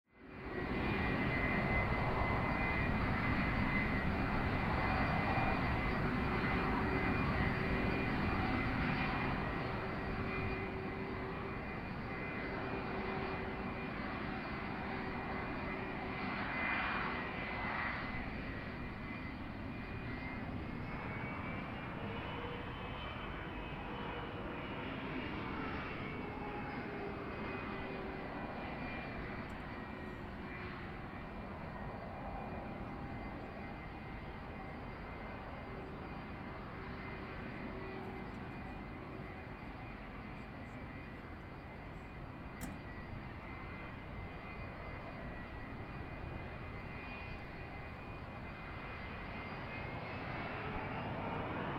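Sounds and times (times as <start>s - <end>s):
Boeing 757 taxiing to the runway before take-off: 0.2s - 51.7s.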